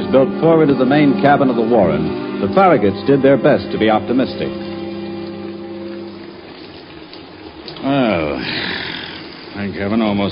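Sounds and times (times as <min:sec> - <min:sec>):
speech: 0:00.1 - 0:04.7, 0:09.6 - 0:10.3
first rain of the season falling on an October evening: 0:03.7 - 0:10.3.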